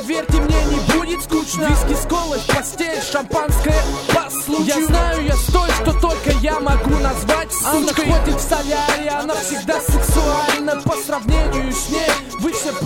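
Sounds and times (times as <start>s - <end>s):
micro street beat: 0.0s - 12.8s.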